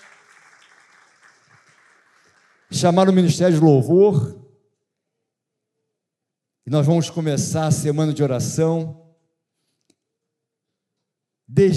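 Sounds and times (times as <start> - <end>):
audience applause: 0.0 - 3.3
speech: 2.8 - 4.4, 6.7 - 9.0, 11.5 - 11.7.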